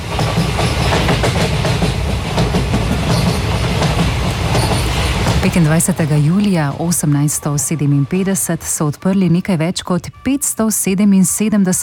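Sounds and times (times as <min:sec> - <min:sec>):
train clattering along railway tracks: 0:00.0 - 0:08.3
speech: 0:05.4 - 0:11.8.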